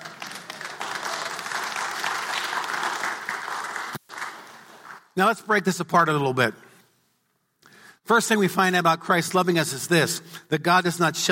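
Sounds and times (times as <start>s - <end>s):
audience clapping: 0.0s - 5.2s
speech: 5.2s - 6.7s, 8.1s - 11.3s.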